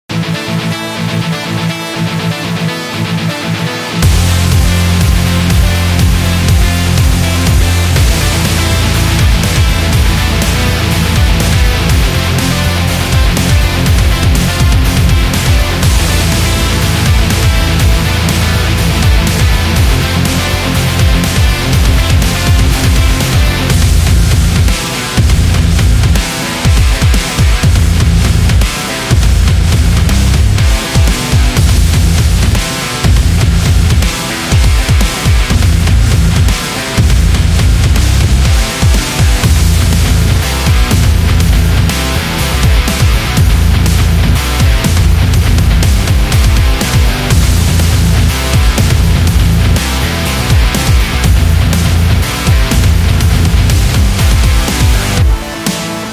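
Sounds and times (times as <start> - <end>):
gym rock music: 0.0 - 56.1.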